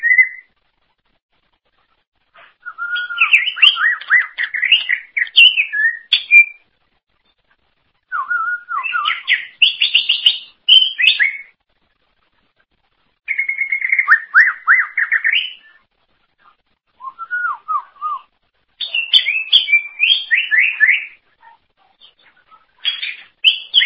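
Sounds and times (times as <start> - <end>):
greater green leafbird singing: 0.0 - 0.5, 2.4 - 6.6, 8.0 - 11.5, 13.3 - 15.8, 17.0 - 23.8.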